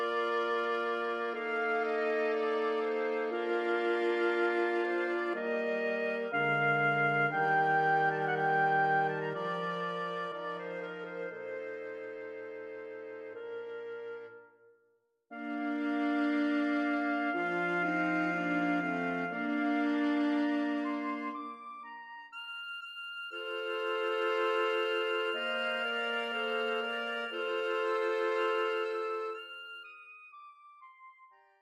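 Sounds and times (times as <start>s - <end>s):
string quartet playing in D minor: 0.0s - 13.0s, 15.4s - 21.4s, 23.5s - 29.5s.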